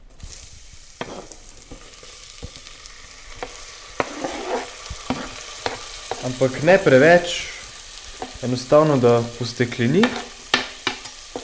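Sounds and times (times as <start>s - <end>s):
onion frying in butter with a little oil in a pot: 0.0s - 11.4s
utensil taps and scrapes against the pot: 1.0s - 2.1s, 3.4s - 6.4s, 10.0s - 11.4s
speech: 6.2s - 7.5s, 8.4s - 10.3s.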